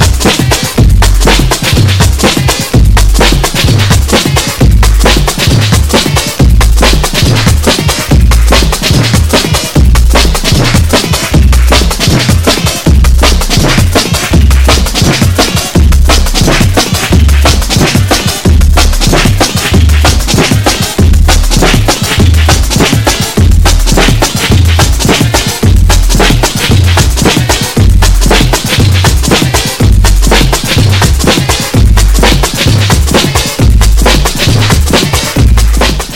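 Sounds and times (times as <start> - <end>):
accelerating rhythm illusion: 0.0 - 36.1.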